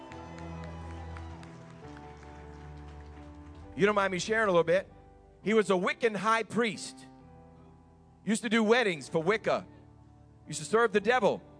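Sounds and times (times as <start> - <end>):
audience clapping: 0.0 - 4.2
speech: 3.8 - 7.1, 8.2 - 9.7, 10.5 - 11.5.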